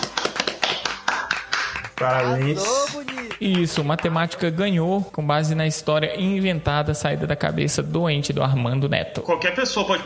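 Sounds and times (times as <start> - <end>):
sharp bright hand claps: 0.0 - 4.4
speech: 2.0 - 2.8, 3.4 - 10.0.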